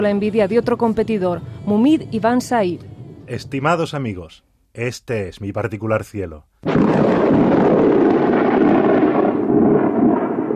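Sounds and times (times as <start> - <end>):
speech: 0.0 - 7.6
thunder: 6.6 - 10.5.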